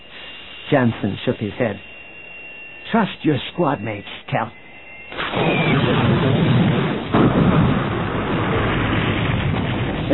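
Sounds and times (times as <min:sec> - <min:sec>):
speech: 0:00.7 - 0:01.9, 0:02.9 - 0:04.6, 0:05.3 - 0:06.0
sci-fi explosion of laser blast hitting a gun emplacement: 0:05.1 - 0:10.1.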